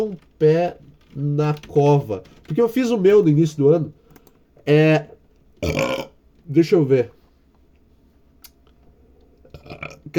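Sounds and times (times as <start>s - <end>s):
speech: 0.0s - 4.0s, 4.7s - 7.2s, 9.8s - 10.1s
person burping: 5.6s - 6.2s, 9.5s - 10.1s.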